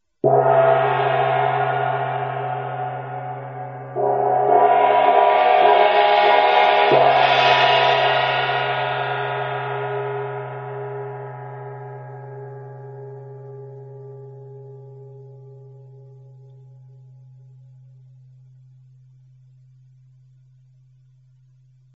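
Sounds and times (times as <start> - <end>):
tam-tam: 0.2 - 13.9.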